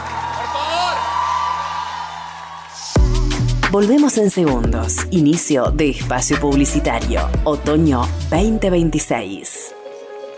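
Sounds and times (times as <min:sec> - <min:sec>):
audience applause and cheering: 0:00.0 - 0:03.6
speech: 0:03.7 - 0:09.5.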